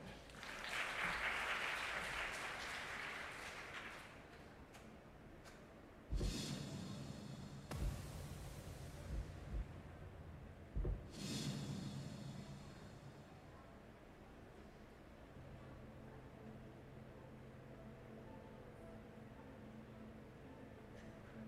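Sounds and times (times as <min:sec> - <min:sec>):
audience clapping: 0:00.0 - 0:05.0
sudden loud rush of sound: 0:06.2 - 0:13.5.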